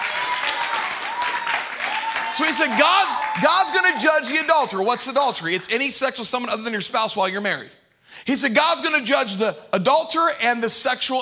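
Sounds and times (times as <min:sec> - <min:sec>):
audience applause: 0:00.0 - 0:04.8
speech: 0:02.4 - 0:11.2.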